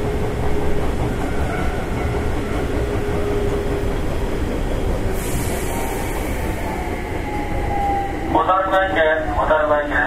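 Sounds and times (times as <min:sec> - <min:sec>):
express train running on the Takarazuka Line: 0:00.0 - 0:10.0
hiss: 0:05.1 - 0:06.8.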